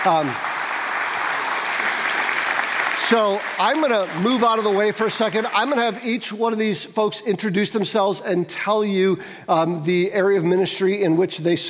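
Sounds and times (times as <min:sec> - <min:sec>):
speech: 0:00.0 - 0:00.5, 0:03.1 - 0:11.6
audience applause: 0:00.0 - 0:06.0.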